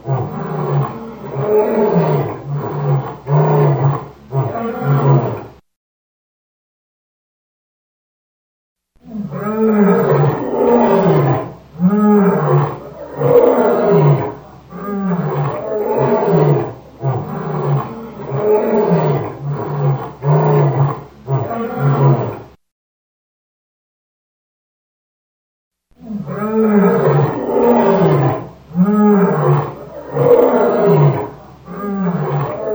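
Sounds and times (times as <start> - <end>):
lion roaring: 0.0 - 5.6, 9.0 - 22.5, 26.0 - 32.7.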